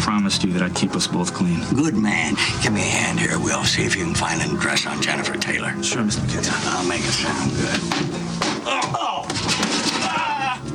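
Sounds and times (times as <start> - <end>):
speech: 0.1 - 9.0
staged beating thumps and crashes behind door: 7.7 - 10.4
person grunting and shouting: 8.7 - 9.3, 10.0 - 10.7.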